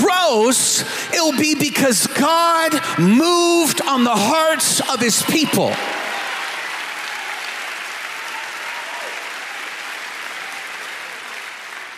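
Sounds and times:
speech: 0.3 - 6.0
large audience clapping: 5.4 - 11.9.

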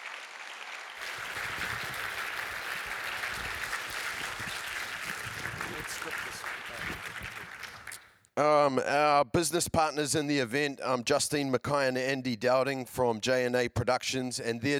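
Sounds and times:
audience applause: 0.0 - 8.0
speech: 8.4 - 14.7.

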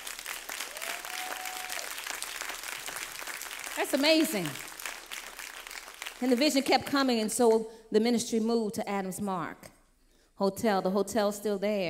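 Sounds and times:
audience clapping: 0.0 - 6.9
speech: 3.8 - 4.7, 6.2 - 9.7, 10.4 - 11.8.

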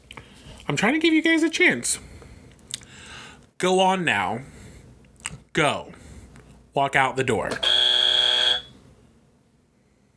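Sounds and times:
speech: 0.7 - 2.1, 3.6 - 4.6, 5.6 - 6.0, 6.8 - 7.7
electronic game buzzer: 7.6 - 8.8.

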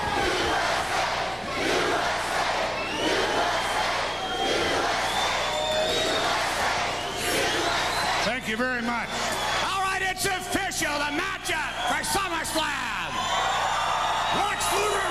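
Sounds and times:
crowd cheering for wrestler: 0.0 - 15.1
high whistles: 2.7 - 8.4, 9.0 - 9.8, 11.6 - 12.1, 13.1 - 15.1.

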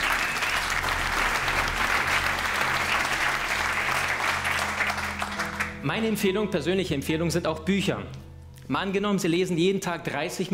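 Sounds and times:
audience applause: 0.0 - 5.8
speech: 5.8 - 10.5.

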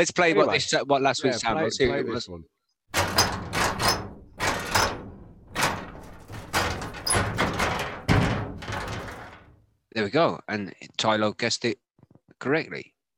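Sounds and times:
speech: 0.0 - 3.0, 10.0 - 11.8, 12.4 - 12.9
lock being operated: 2.9 - 9.6.

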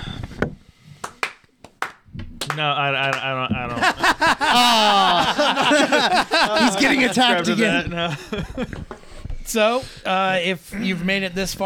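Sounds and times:
hand clap: 0.9 - 4.4
speech: 2.6 - 8.9, 9.5 - 11.6
laughter: 3.0 - 9.1.

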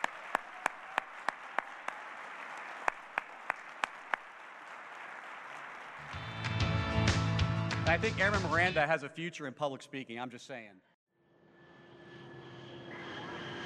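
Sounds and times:
audience applause at a US Air Force ceremony: 0.0 - 6.8
speech: 7.9 - 10.9.

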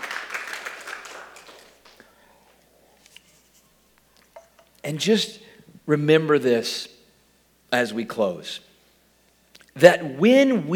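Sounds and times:
crowd clapping: 0.0 - 2.0
speech: 4.9 - 6.9, 7.7 - 8.7, 9.8 - 10.7.

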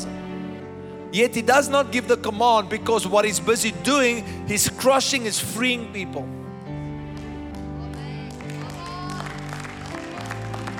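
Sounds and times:
speech: 1.1 - 6.4
audience clapping: 7.0 - 10.7.

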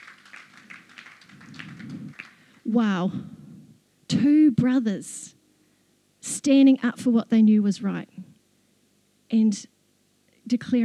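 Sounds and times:
audience clapping: 0.0 - 2.7
speech: 2.7 - 3.4, 4.1 - 5.3, 6.4 - 8.1, 9.3 - 9.7, 10.5 - 10.8.

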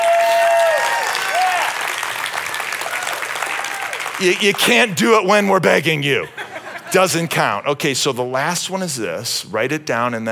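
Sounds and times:
gliding whoops and cheers: 0.0 - 4.2
audience applause: 0.0 - 5.0
speech: 4.2 - 10.3
laughter: 6.1 - 7.4.

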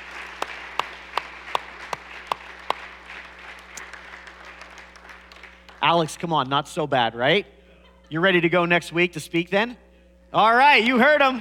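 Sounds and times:
audience applause: 0.0 - 5.8
speech: 5.9 - 11.3.

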